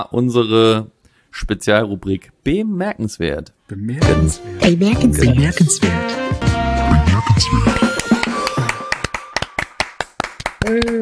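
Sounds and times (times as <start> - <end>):
speech: 0.0 - 6.4, 7.0 - 7.8, 10.7 - 10.9
hands clapping: 7.2 - 10.9.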